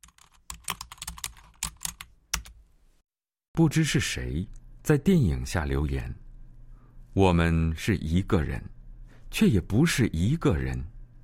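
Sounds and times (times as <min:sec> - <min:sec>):
typing on a computer keyboard: 0:00.0 - 0:02.6
speech: 0:03.6 - 0:06.2, 0:07.2 - 0:10.9.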